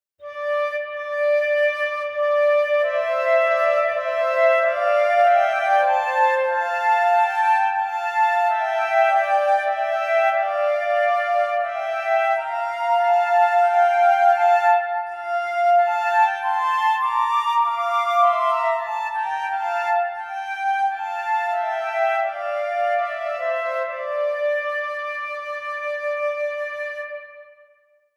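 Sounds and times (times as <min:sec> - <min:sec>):
two recorders playing: 0:00.3 - 0:27.6.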